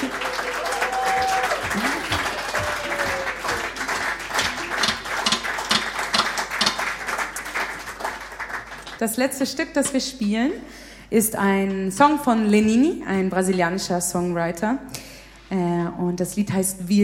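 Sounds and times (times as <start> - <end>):
audience applause at a live music concert: 0.0 - 9.0
speech: 9.0 - 17.0.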